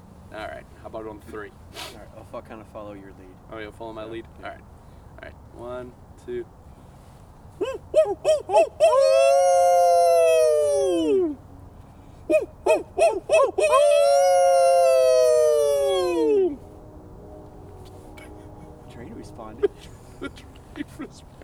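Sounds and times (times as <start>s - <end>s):
speech: 0.4s - 6.6s, 8.0s - 9.4s
humans imitating a coyote howl: 7.6s - 11.4s, 12.3s - 16.6s
laughter: 18.2s - 21.4s.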